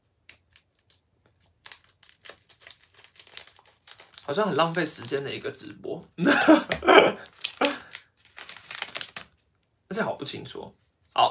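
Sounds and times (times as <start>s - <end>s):
trading card pack foil wrapper tearing open: 0.0s - 5.6s, 7.2s - 9.4s
speech: 4.3s - 7.2s, 10.3s - 11.2s.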